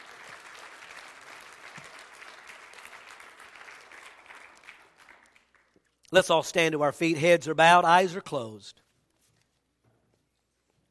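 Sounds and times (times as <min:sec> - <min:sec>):
crowd clapping: 0:00.0 - 0:06.3
speech: 0:06.1 - 0:08.8.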